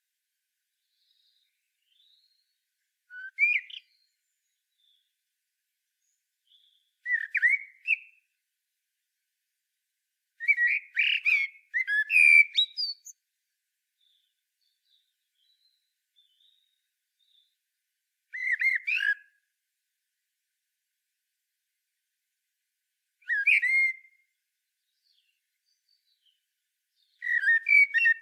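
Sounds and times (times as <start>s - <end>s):
common blackbird singing: 0.8s - 5.1s, 6.0s - 8.2s, 10.4s - 13.2s, 14.0s - 17.6s, 18.3s - 19.2s, 23.2s - 26.4s, 27.0s - 28.1s.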